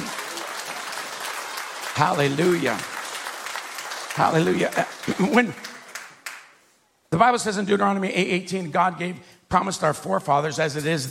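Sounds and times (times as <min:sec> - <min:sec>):
audience hand clapping: 0:00.0 - 0:06.6
speech: 0:02.0 - 0:02.9, 0:04.2 - 0:05.7, 0:07.1 - 0:11.0.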